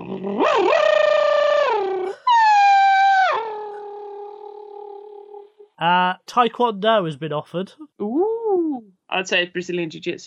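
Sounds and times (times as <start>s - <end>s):
person vocally imitating a Formula One car passing: 0.0s - 3.7s
speech: 5.8s - 8.3s, 9.1s - 10.2s.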